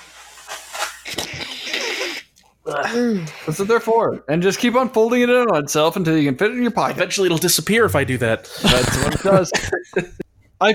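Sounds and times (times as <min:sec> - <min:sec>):
person blowing nose into a handkerchief: 0:00.0 - 0:03.7, 0:08.5 - 0:09.2
speech: 0:02.7 - 0:10.7
laughter: 0:08.5 - 0:10.2.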